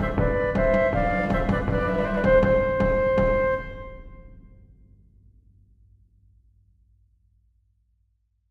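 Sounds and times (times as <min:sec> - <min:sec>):
march for flutes and drums: 0:00.0 - 0:04.5.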